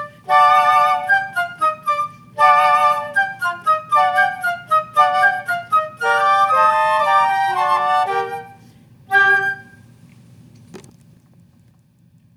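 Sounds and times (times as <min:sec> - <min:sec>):
quartet with percussion: 0:00.0 - 0:09.7.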